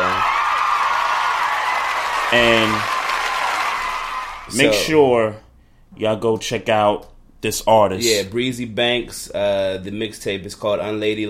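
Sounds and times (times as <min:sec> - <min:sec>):
round of applause sound effect: 0:00.0 - 0:04.9
speech: 0:02.3 - 0:03.0, 0:04.5 - 0:11.2.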